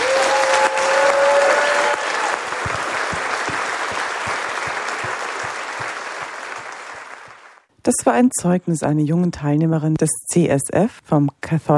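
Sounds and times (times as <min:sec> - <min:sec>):
audience applause: 0:00.0 - 0:07.7
speech: 0:08.0 - 0:11.7.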